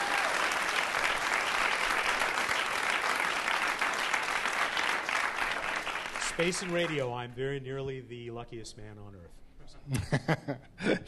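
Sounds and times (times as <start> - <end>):
audience applause: 0.0 - 7.2
speech: 6.4 - 11.0
laughter: 9.9 - 11.0.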